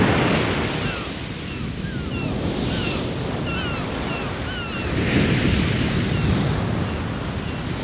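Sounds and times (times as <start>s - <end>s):
gull calls: 0.2s - 7.7s.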